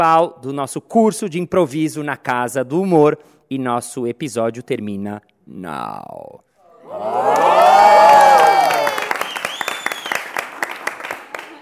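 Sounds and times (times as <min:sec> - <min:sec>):
speech: 0:00.0 - 0:08.1
audience applause: 0:06.9 - 0:11.6.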